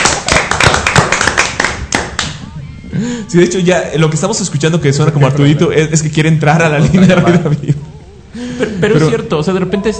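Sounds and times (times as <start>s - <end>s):
studio applause with clapping and tapping: 0.0s - 2.4s
speech: 3.1s - 7.8s, 8.8s - 9.9s
laughter: 6.6s - 9.3s.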